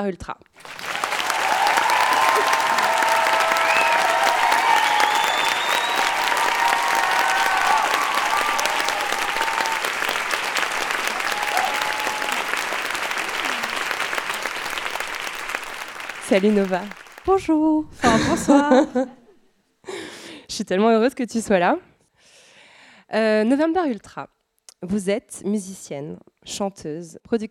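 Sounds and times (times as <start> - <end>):
speech: 0.0 - 0.8, 16.3 - 19.2, 20.6 - 21.9, 23.1 - 27.4
cheers and whoops: 0.6 - 17.0
crowd applauding: 0.6 - 17.4
laughter: 1.0 - 15.0, 18.0 - 19.2.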